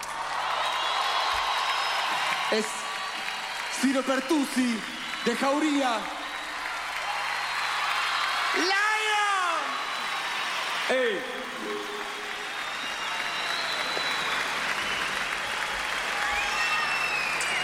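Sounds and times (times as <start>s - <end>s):
audience applause: 0.0s - 17.6s
speech: 2.5s - 2.8s, 3.8s - 6.2s, 8.5s - 8.8s, 10.9s - 12.0s.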